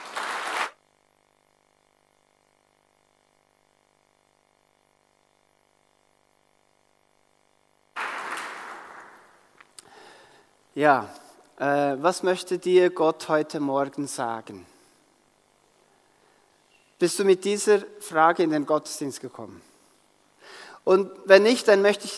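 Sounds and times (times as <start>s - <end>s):
audience applause: 0.0s - 0.8s, 8.0s - 9.6s
speech: 10.8s - 14.7s, 17.0s - 19.7s, 20.4s - 22.1s.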